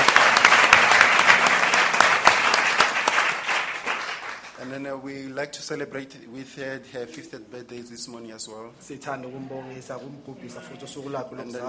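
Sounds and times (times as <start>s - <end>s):
audience applause: 0.0s - 4.6s
speech: 4.9s - 11.6s.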